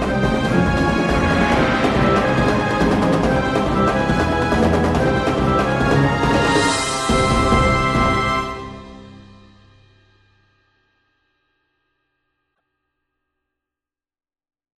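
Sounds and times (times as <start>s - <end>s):
orchestra playing a theme: 0.0s - 9.6s.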